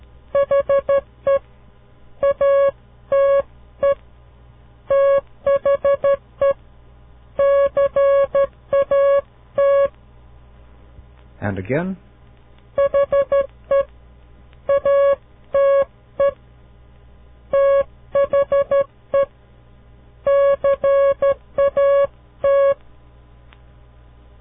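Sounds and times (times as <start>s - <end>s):
Morse code tones spelling a sentence: 0.4s - 1.4s, 2.2s - 4.0s, 4.9s - 6.6s, 7.4s - 9.9s, 12.8s - 13.9s, 14.7s - 16.4s, 17.5s - 19.3s, 20.3s - 22.8s
speech: 11.6s - 12.1s.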